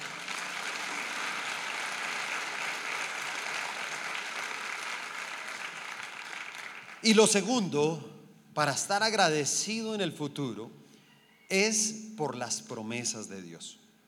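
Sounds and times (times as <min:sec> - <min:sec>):
audience applause: 0:00.0 - 0:07.0
speech: 0:07.0 - 0:10.8, 0:11.5 - 0:13.8.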